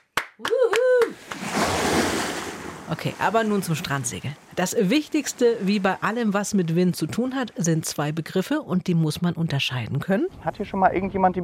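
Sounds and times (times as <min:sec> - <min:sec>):
audience applause at a live talk: 0:00.0 - 0:01.5
speech: 0:00.4 - 0:00.6, 0:02.9 - 0:11.4.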